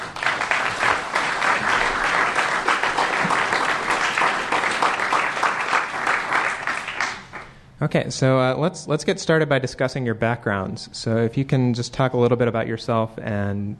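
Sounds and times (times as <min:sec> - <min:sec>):
audience applause welcoming speakers: 0:00.0 - 0:07.5
speech: 0:07.8 - 0:13.7.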